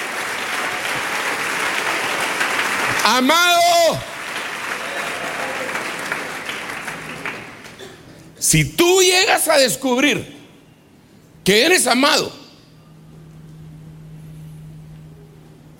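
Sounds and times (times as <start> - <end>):
audience applause: 0.0 - 7.9
speech: 3.1 - 4.2, 8.4 - 10.4, 11.4 - 12.4.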